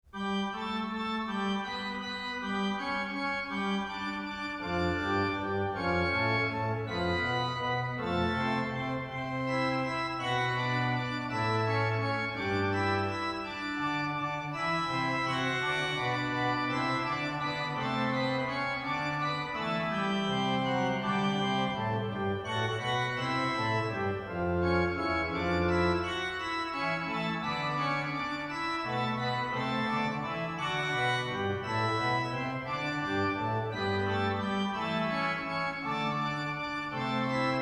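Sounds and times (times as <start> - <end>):
organ fanfare: 0.2 - 37.6.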